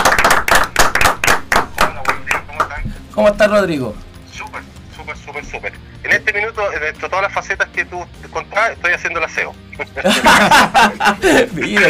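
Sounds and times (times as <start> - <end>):
audience applause: 0.0 - 2.7
speech: 3.2 - 4.0, 5.4 - 11.8
laughter: 9.9 - 11.8.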